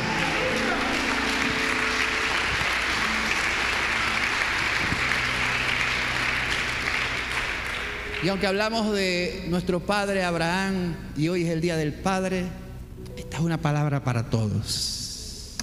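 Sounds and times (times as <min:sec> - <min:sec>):
audience applauding: 0:00.0 - 0:09.0
speech: 0:08.2 - 0:15.0.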